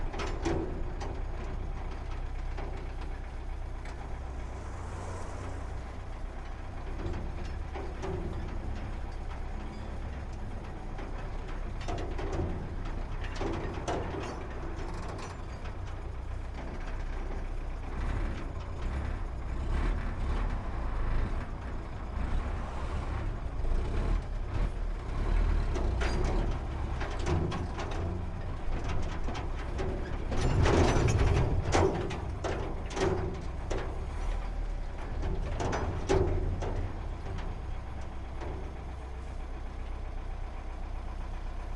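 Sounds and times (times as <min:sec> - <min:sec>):
garbage truck engine starting and driving uphill, recorded onboard at exhaust: 0:00.0 - 0:41.7.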